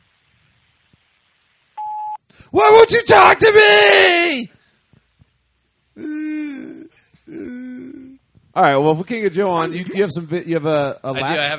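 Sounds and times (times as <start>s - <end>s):
voicemail beep: 1.8s - 2.2s
speech: 2.5s - 4.6s, 8.6s - 11.5s.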